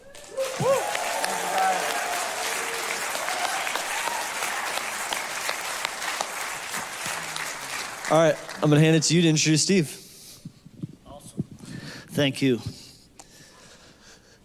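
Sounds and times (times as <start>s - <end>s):
audience cheering and applause: 0.0s - 9.0s
whoop or whistle: 0.3s - 4.4s
speech: 8.1s - 10.0s, 12.2s - 12.8s.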